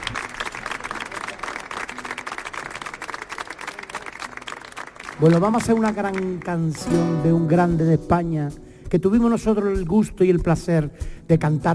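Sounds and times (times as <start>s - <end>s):
audience applause: 0.0s - 6.8s
crowd noise: 0.0s - 7.8s
speech: 5.2s - 11.7s.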